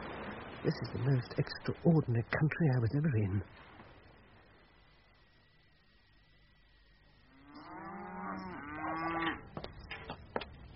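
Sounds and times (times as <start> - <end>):
speech: 0.6 - 3.7
cow mooing: 7.3 - 9.4.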